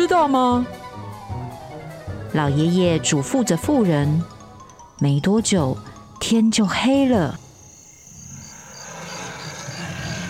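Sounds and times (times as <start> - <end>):
speech: 0.0 - 0.8, 2.3 - 4.4, 5.0 - 7.4
distant roar of a mythical Nian beast: 8.4 - 10.2.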